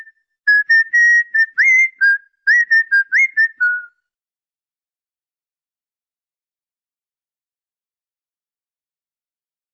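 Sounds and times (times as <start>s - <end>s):
whistling for a cockatiel: 0.0s - 4.1s.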